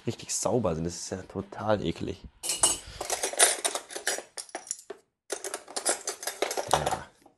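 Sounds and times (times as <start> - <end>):
speech: 0.0 - 2.6
metal spoons rattling in a kitchen drawer: 2.4 - 7.1.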